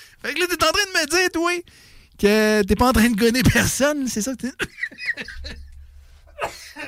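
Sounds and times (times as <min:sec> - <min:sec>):
speech: 0:00.2 - 0:05.6, 0:06.4 - 0:06.8
person coughing and choking: 0:06.3 - 0:06.8.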